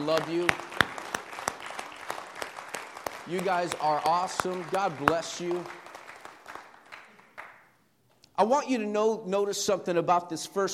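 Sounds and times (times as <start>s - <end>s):
speech: 0.0s - 0.8s, 3.3s - 5.8s, 8.4s - 10.7s
audience applause for mothers: 0.0s - 7.6s.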